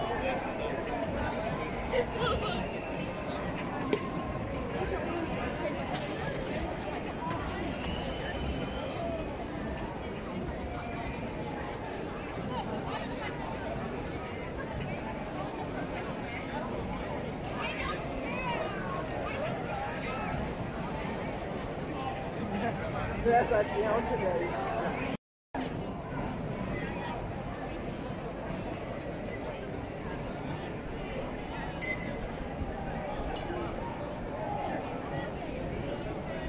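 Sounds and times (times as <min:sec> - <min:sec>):
crowded street ambience: 0:00.0 - 0:36.4.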